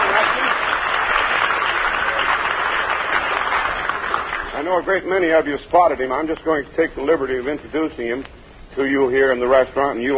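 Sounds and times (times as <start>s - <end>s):
audience cheering: 0.0s - 4.5s
speech: 4.7s - 10.1s.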